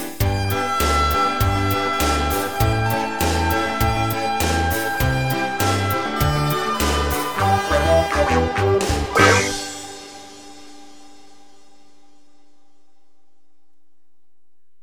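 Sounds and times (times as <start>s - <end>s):
wah kazoo: 0.4s - 9.8s.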